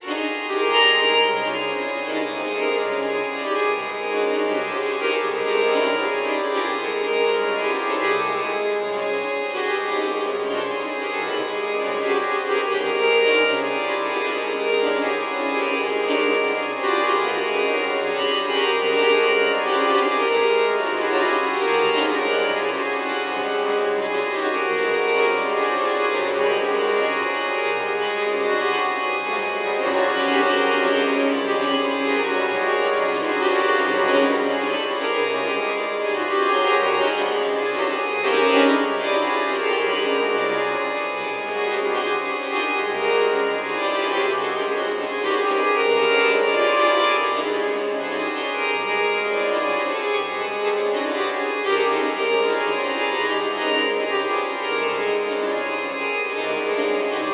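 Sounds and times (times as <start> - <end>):
strings: 0.0 - 57.3.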